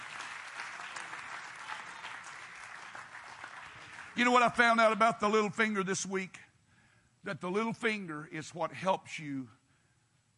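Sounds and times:
audience clapping hands: 0:00.0 - 0:05.0
speech: 0:04.2 - 0:06.5, 0:07.2 - 0:09.6.

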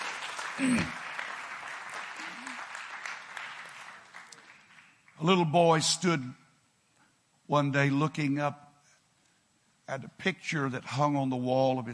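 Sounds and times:
audience clapping hands in praise: 0:00.0 - 0:05.4
speech: 0:00.6 - 0:01.0, 0:05.2 - 0:06.4, 0:07.5 - 0:08.6, 0:09.9 - 0:11.9.

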